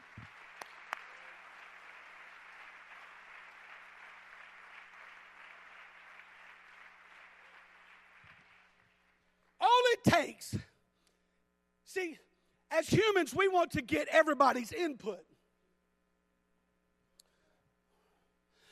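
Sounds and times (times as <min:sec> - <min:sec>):
audience clapping hands: 0:00.0 - 0:10.0
speech: 0:10.0 - 0:10.7, 0:11.9 - 0:15.3.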